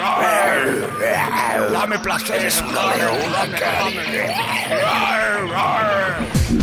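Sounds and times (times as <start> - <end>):
zebras roaring while mating, as a ringtone: 0.1 - 6.5
speech: 1.3 - 6.4.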